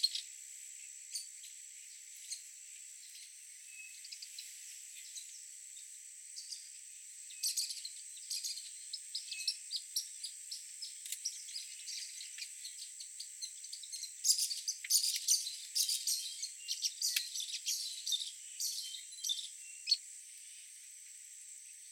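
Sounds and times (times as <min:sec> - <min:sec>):
martin rattling twittering song: 0:07.3 - 0:20.0.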